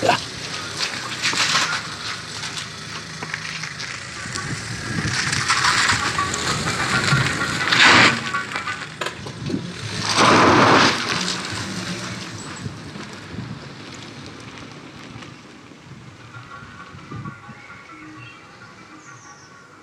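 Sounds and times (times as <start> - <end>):
creaky car undercarriage: 0.0 - 15.4
car passing: 0.0 - 19.8.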